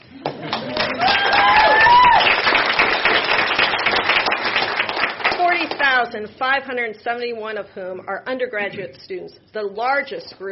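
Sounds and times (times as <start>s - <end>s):
audience applause: 0.2s - 5.4s
audience cheering: 0.4s - 4.0s
speech: 6.1s - 10.5s.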